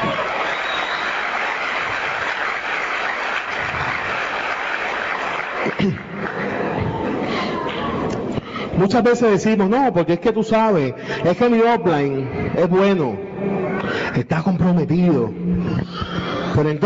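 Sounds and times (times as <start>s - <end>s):
audience applause: 0.0s - 8.1s
speech: 5.8s - 6.0s, 8.8s - 13.2s, 14.2s - 16.8s.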